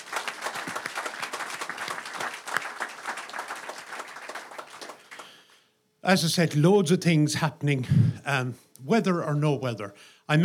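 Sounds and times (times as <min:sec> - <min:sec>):
audience round of applause: 0:00.0 - 0:05.4
speech: 0:06.1 - 0:10.4.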